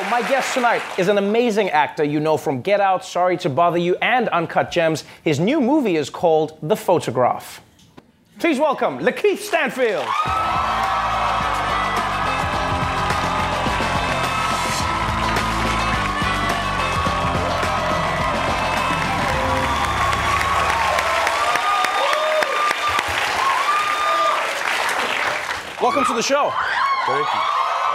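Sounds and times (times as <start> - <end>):
studio audience applause: 0.0 - 1.3, 9.7 - 27.9
speech: 0.1 - 7.7, 8.4 - 11.2, 25.8 - 27.6.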